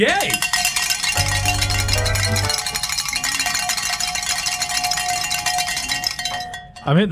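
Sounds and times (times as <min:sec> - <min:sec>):
cowbells clanging: 0:00.0 - 0:07.1
low humming tone: 0:01.2 - 0:02.9.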